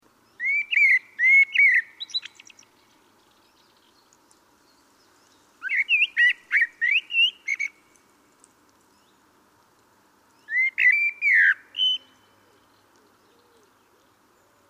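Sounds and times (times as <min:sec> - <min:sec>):
Common blackbird whistled song: 0:00.3 - 0:02.9, 0:05.6 - 0:07.8, 0:10.4 - 0:13.7.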